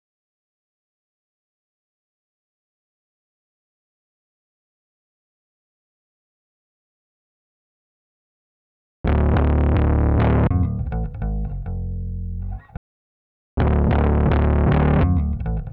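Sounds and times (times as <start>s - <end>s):
bass: 9.0s - 12.8s, 13.6s - 15.7s.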